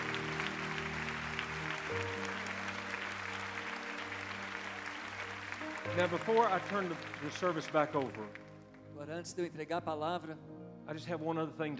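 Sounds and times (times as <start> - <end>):
congregation clapping in a bilingual church service after a prayer: 0.0 - 8.9
sustained low keyboard chords: 0.0 - 11.7
speech: 6.0 - 8.4, 9.0 - 11.7.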